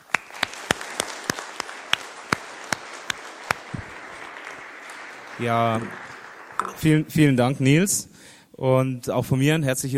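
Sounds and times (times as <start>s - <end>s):
audience applause: 0.0s - 7.3s
speech: 5.4s - 6.1s, 6.8s - 9.9s.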